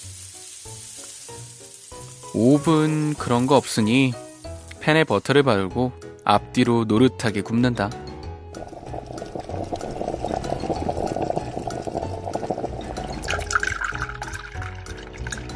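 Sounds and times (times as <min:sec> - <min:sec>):
speech: 0:02.3 - 0:04.2, 0:04.8 - 0:08.0
hot water poured into a cup of instant ramen: 0:08.5 - 0:15.5.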